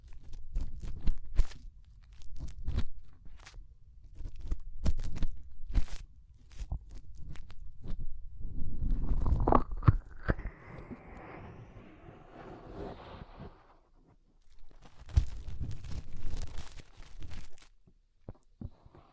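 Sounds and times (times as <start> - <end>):
fingers rubbing and crunching inside an ear: 0.0 - 10.5, 14.4 - 19.1.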